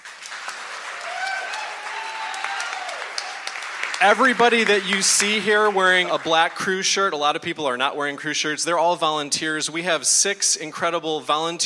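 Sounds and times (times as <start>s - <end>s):
audience applause: 0.0s - 6.7s
speech: 4.0s - 11.6s.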